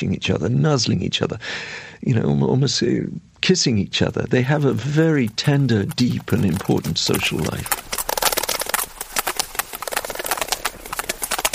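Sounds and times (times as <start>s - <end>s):
speech: 0.0s - 7.9s
large number of sperm whales clicking: 4.0s - 11.5s.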